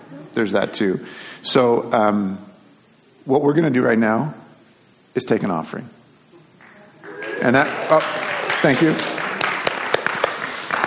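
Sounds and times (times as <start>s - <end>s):
speech: 0.3s - 2.5s, 3.2s - 4.4s, 5.2s - 6.0s, 7.4s - 9.1s
people clapping: 6.6s - 10.8s.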